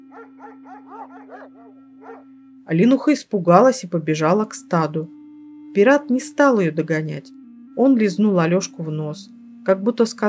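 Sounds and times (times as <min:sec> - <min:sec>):
dog growling: 0:00.1 - 0:02.2
speech: 0:00.2 - 0:05.2, 0:05.8 - 0:10.2.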